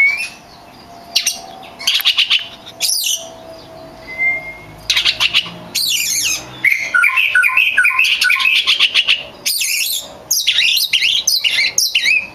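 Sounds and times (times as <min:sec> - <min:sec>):
champion Oriental magpie-robin singing a medley of whistles and trills: 0:00.0 - 0:12.3.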